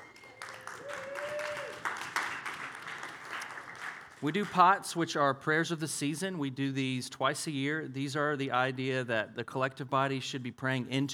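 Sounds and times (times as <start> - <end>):
audience clapping: 0.0 - 4.7
speech: 4.2 - 11.1.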